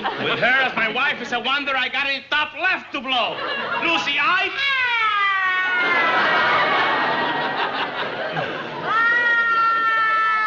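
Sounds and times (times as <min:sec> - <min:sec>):
laughter: 0:00.0 - 0:01.6, 0:03.0 - 0:10.4
speech: 0:00.2 - 0:04.7, 0:05.8 - 0:06.6
woman crying loudly: 0:08.8 - 0:10.4.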